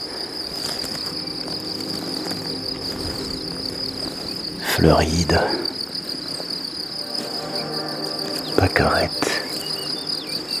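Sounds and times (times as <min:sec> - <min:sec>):
crickets chirping in an alpine meadow: 0:00.0 - 0:10.5
speech: 0:04.8 - 0:05.6, 0:08.7 - 0:09.4.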